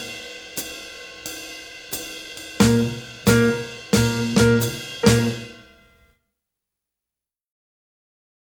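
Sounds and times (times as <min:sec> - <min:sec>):
swing rhythm workout music: 0:02.5 - 0:05.7.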